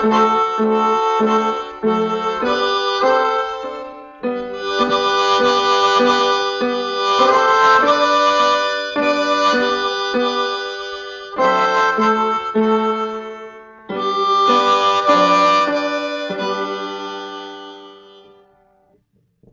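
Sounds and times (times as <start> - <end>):
Hohner Diatonic 10H harmonica playing a German folk song: 0.0 - 18.9
piano: 0.0 - 18.9.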